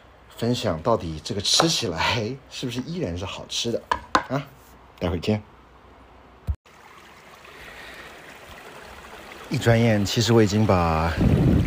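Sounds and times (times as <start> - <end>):
speech: 0.4 - 5.5, 9.5 - 11.6
stream water rushing: 6.7 - 11.6.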